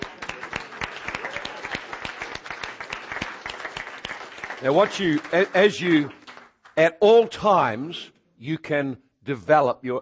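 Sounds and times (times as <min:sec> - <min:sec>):
audience clapping: 0:00.0 - 0:07.3
speech: 0:04.6 - 0:06.2, 0:06.8 - 0:10.0.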